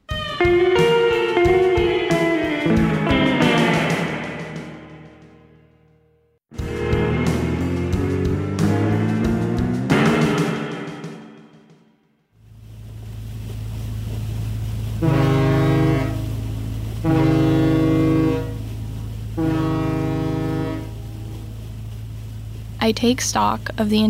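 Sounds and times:
ferry ship horn blasts: 0:00.2 - 0:05.9, 0:06.6 - 0:11.2, 0:14.9 - 0:22.2
ferry ship engine drone: 0:00.8 - 0:05.8, 0:06.6 - 0:11.7, 0:12.4 - 0:24.0
speech: 0:22.9 - 0:24.0.

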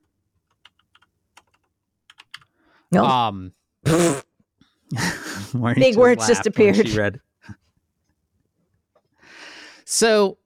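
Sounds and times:
typing a note on a computer keyboard: 0:00.4 - 0:02.5
speech: 0:02.9 - 0:04.2, 0:04.9 - 0:07.6, 0:09.9 - 0:10.4.

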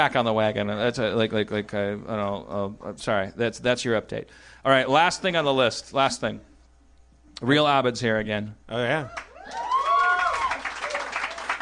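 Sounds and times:
speech: 0:00.0 - 0:06.5, 0:07.4 - 0:09.6
small crowd applauding: 0:09.1 - 0:11.6.

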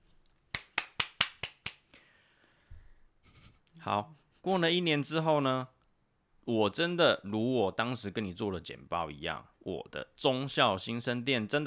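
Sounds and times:
hand clapping: 0:00.5 - 0:01.9
speech: 0:03.8 - 0:05.8, 0:06.4 - 0:11.6.

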